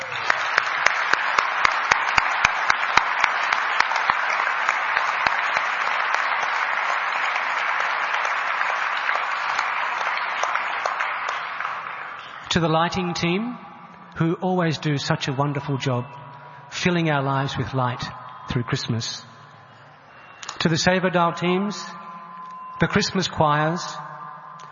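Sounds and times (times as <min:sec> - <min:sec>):
crowd of devotees applauding the decoration team at a Christmas celebration: 0:00.0 - 0:12.5
speech: 0:12.6 - 0:19.3, 0:20.6 - 0:22.0, 0:22.8 - 0:24.0.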